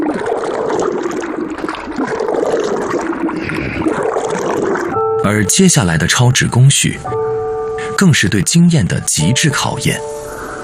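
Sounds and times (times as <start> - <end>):
water and paper pulp being stirred in a mixing vat: 0.0 - 5.0
speech: 5.3 - 7.3, 8.0 - 10.3.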